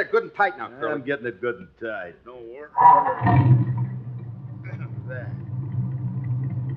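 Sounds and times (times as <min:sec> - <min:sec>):
speech: 0:00.0 - 0:03.8, 0:05.1 - 0:05.5
truck motor starting: 0:02.8 - 0:06.7.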